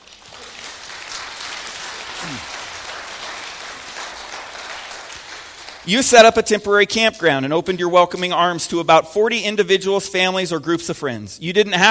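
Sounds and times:
audience round of applause: 0:00.0 - 0:06.3
speech: 0:02.2 - 0:02.6, 0:05.8 - 0:11.8.

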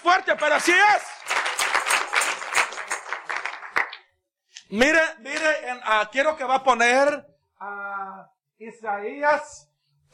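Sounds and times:
speech: 0:00.0 - 0:01.4, 0:04.7 - 0:10.1
audience clapping their hands together: 0:00.0 - 0:04.2.

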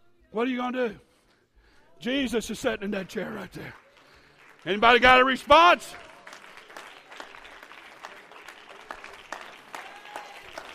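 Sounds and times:
speech: 0:00.3 - 0:01.1, 0:02.0 - 0:03.8, 0:04.6 - 0:06.1
audience clapping hands: 0:03.0 - 0:10.7.

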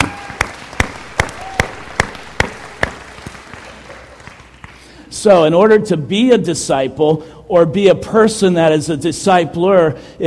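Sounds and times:
rhythmic audience clapping for sound technicians: 0:00.0 - 0:04.9
speech: 0:05.2 - 0:10.2.

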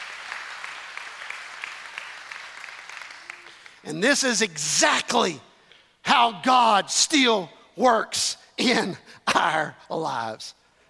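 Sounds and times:
audience hand clapping in praise: 0:00.0 - 0:03.9
speech: 0:03.8 - 0:05.5, 0:06.2 - 0:10.6.

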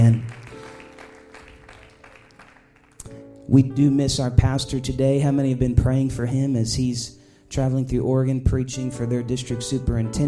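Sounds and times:
audience clapping hands: 0:00.0 - 0:03.4
speech: 0:03.5 - 0:10.2.

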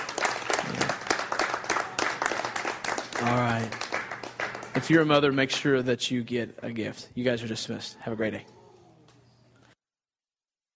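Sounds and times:
audience applause: 0:00.0 - 0:05.1
speech: 0:03.2 - 0:03.8, 0:04.8 - 0:08.6.

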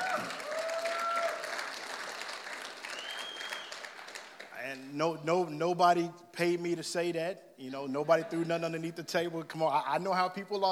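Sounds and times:
round of applause: 0:00.0 - 0:04.8
speech: 0:05.0 - 0:10.7.

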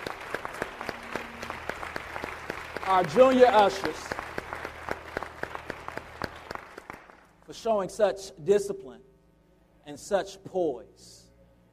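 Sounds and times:
audience applause in a reverberant hall: 0:00.0 - 0:07.3
speech: 0:02.9 - 0:04.2, 0:07.6 - 0:09.0, 0:09.9 - 0:11.2.

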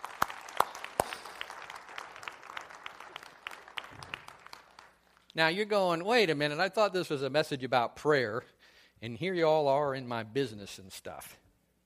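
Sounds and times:
crowd clapping: 0:00.0 - 0:05.4
speech: 0:05.4 - 0:11.4.

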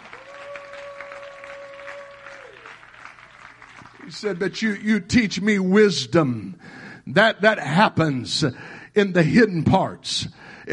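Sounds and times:
audience clapping hands: 0:00.0 - 0:04.8
speech: 0:04.1 - 0:10.7.

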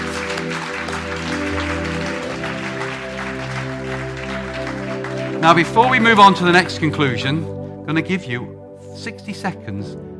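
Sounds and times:
large crowd applause: 0:00.0 - 0:06.9
sustained organ-like keyboard chords: 0:00.0 - 0:10.1
speech: 0:05.4 - 0:10.1.

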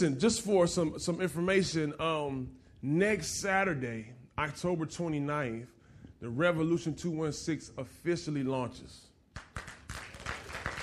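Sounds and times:
speech: 0:00.0 - 0:09.1
audience clapping: 0:09.3 - 0:10.8.

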